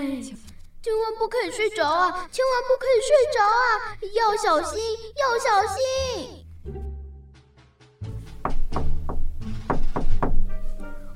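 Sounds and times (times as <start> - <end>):
speech: 0.2 - 6.8
knocking on a door: 8.2 - 10.5.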